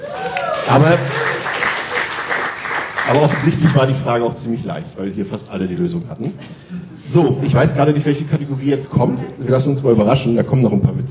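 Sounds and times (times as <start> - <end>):
applause after a quiz answer: 0.0 - 4.0
speech: 0.7 - 1.4, 3.1 - 11.1.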